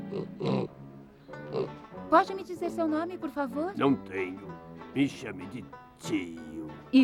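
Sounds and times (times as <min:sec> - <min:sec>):
pig oinking: 0:00.1 - 0:00.7, 0:01.4 - 0:01.8
speech: 0:02.1 - 0:07.0.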